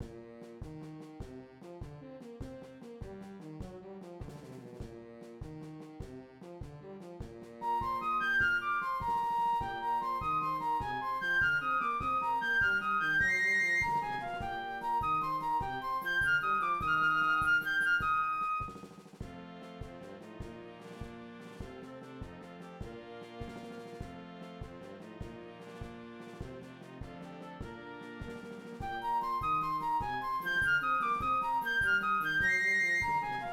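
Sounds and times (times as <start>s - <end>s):
flute: 7.6s - 33.5s.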